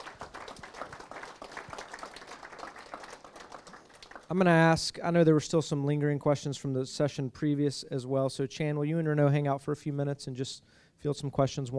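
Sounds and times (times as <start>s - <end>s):
audience applauding at the close of a session: 0.0s - 4.4s
speech: 4.3s - 11.7s.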